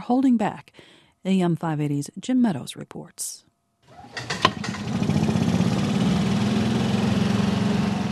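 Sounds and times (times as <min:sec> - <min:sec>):
speech: 0:00.1 - 0:04.3
gasoline-powered golf cart driving through Cerro Gordo, Illinois: 0:03.9 - 0:08.1.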